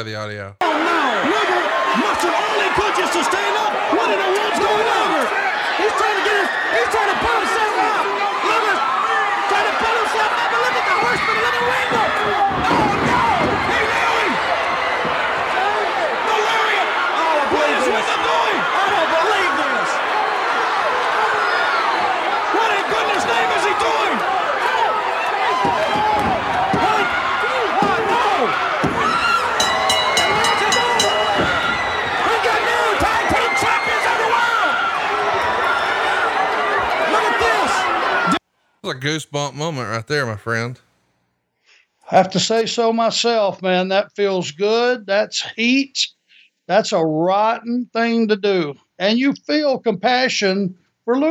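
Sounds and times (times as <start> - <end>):
speech: 0.0 - 8.3, 38.9 - 40.8, 42.1 - 46.1, 46.7 - 51.2
large crowd gasping and roaring: 0.7 - 38.4.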